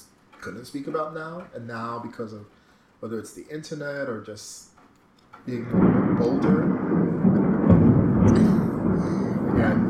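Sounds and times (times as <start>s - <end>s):
speech: 0.4s - 4.7s, 5.4s - 6.8s
loud thunder rumbling: 5.5s - 9.8s.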